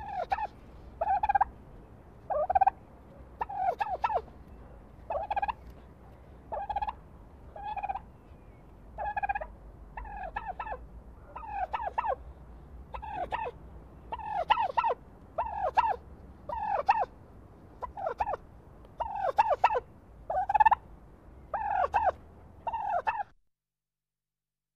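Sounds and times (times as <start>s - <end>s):
turkeys: 0.0s - 1.5s, 2.3s - 2.8s, 3.4s - 4.3s, 5.1s - 5.7s, 6.5s - 8.1s, 9.0s - 12.2s, 12.9s - 17.1s, 17.8s - 18.4s, 19.0s - 20.8s, 21.5s - 23.3s.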